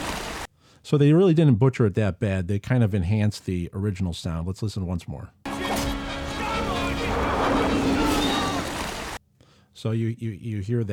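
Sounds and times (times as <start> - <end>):
water rushing in: 0.0 - 0.5, 5.5 - 9.2
speech: 0.8 - 5.4, 9.8 - 10.9
shark passing camera: 5.5 - 9.2.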